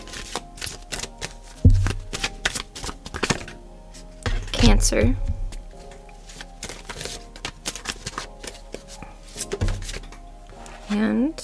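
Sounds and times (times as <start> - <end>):
Barbieri Zodiac Oracle deck cards shuffling rustles: 0.0 - 4.5, 5.5 - 11.0
Barbieri Zodiac Oracle deck cards flicking: 0.1 - 3.6, 6.3 - 8.6
speech: 4.8 - 5.3, 10.9 - 11.4.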